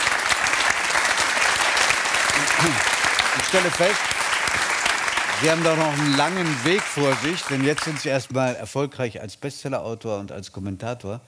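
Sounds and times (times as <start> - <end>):
audience applause: 0.0 - 8.6
speech: 2.6 - 2.9, 3.5 - 4.6, 5.4 - 11.2.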